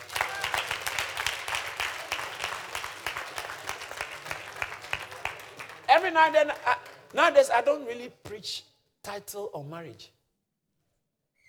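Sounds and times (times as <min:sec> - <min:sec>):
audience clapping: 0:00.0 - 0:08.0
speech: 0:06.0 - 0:10.2.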